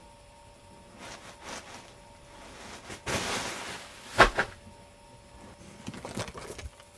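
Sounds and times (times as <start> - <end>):
blankets rustling: 0.8 - 4.6.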